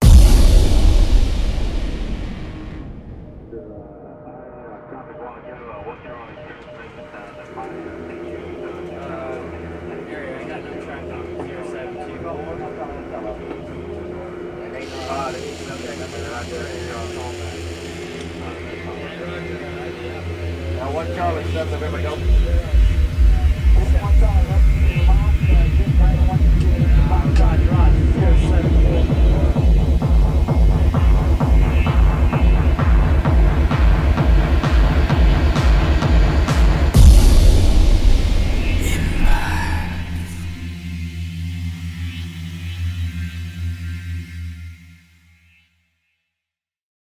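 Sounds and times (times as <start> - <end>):
hardstyle music: 0.0 - 3.6, 22.2 - 40.9.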